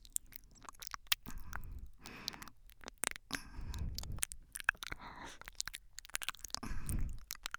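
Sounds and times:
wet sucking sounds: 0:00.6 - 0:05.7, 0:06.5 - 0:07.4.

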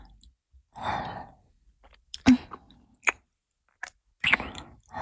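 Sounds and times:
sucking sounds: 0:00.8 - 0:03.2, 0:04.2 - 0:04.9
soft tongue kissing with sucking sounds: 0:04.3 - 0:04.8.

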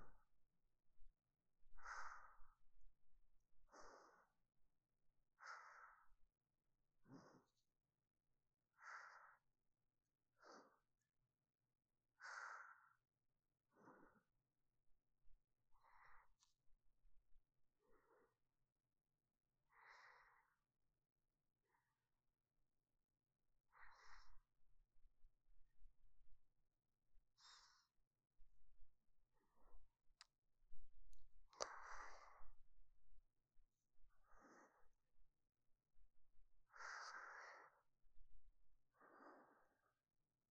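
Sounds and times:
sleeping breath: 0:01.8 - 0:02.6, 0:03.7 - 0:04.4, 0:05.4 - 0:06.2, 0:07.0 - 0:07.6, 0:08.7 - 0:09.5, 0:10.4 - 0:11.0, 0:12.2 - 0:13.0, 0:13.7 - 0:14.3, 0:17.8 - 0:18.4, 0:19.7 - 0:20.6, 0:23.7 - 0:24.5, 0:27.4 - 0:28.0, 0:31.6 - 0:32.6, 0:34.1 - 0:35.0, 0:36.7 - 0:37.9, 0:38.9 - 0:40.0.

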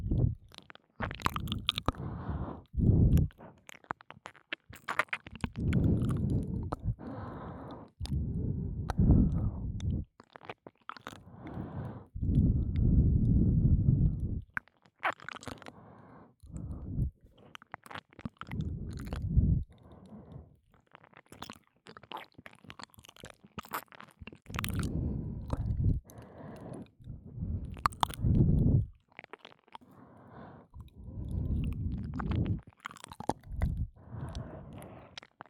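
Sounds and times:
ear licking in the right ear: 0:00.0 - 0:14.6, 0:17.8 - 0:19.8, 0:23.2 - 0:29.0, 0:30.6 - 0:35.4
breathing and ear licking in the right ear: 0:01.9 - 0:03.5, 0:05.6 - 0:10.0, 0:11.3 - 0:14.4, 0:15.7 - 0:17.2, 0:24.7 - 0:28.9, 0:29.8 - 0:32.6, 0:33.4 - 0:35.2.

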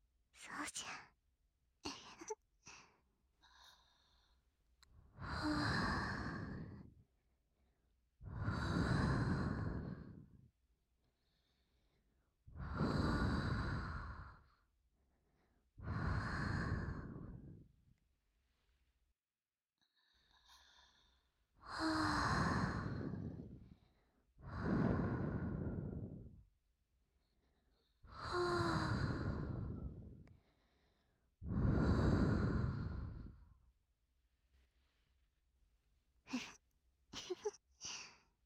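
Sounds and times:
speech: 0:00.4 - 0:01.2
person breathing slowly and deeply: 0:02.7 - 0:04.5, 0:05.1 - 0:07.0, 0:08.2 - 0:10.4, 0:11.1 - 0:14.6, 0:15.2 - 0:17.7, 0:19.8 - 0:26.4, 0:27.2 - 0:33.6.

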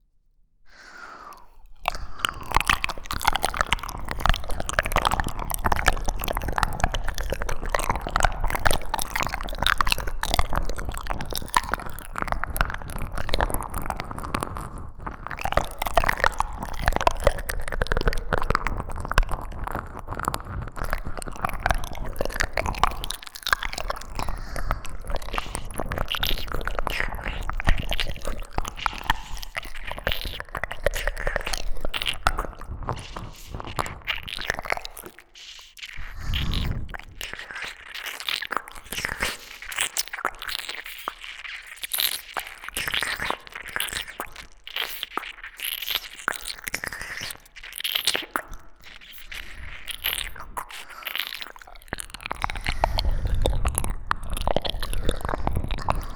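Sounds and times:
ear licking in a bath: 0:00.7 - 0:56.1.

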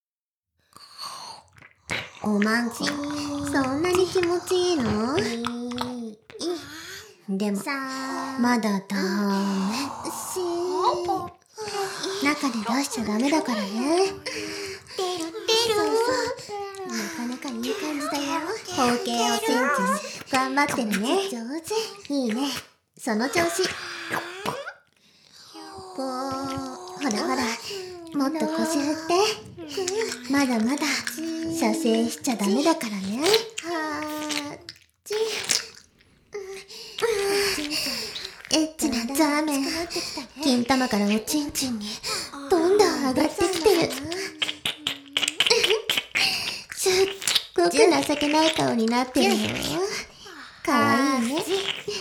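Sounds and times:
ear licking: 0:00.8 - 0:08.2, 0:08.9 - 0:51.9
person speaking erotic lines: 0:02.0 - 0:24.8, 0:25.4 - 0:35.5, 0:36.4 - 0:51.9.

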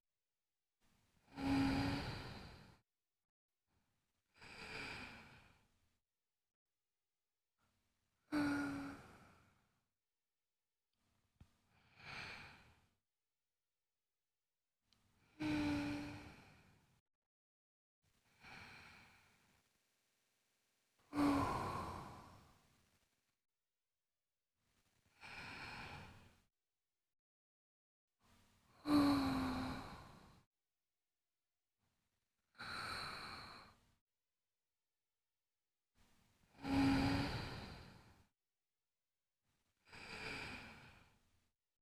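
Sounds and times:
ASMR sleep breathing on the left side: 0:01.3 - 0:02.8, 0:04.4 - 0:05.6, 0:08.3 - 0:09.6, 0:11.9 - 0:12.8, 0:15.4 - 0:16.8, 0:21.2 - 0:22.5, 0:28.8 - 0:30.4, 0:36.6 - 0:38.1, 0:39.9 - 0:41.1.

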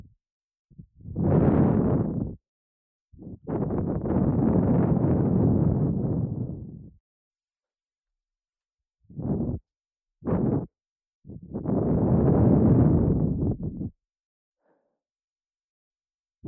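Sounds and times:
blowing into left ear: 0:01.0 - 0:02.4, 0:03.3 - 0:06.8, 0:09.1 - 0:09.6, 0:10.2 - 0:10.7, 0:11.3 - 0:13.9.

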